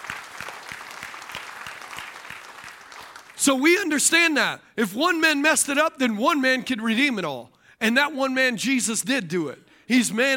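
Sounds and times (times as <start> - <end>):
audience clapping: 0.0 - 3.6
speech: 3.4 - 10.3.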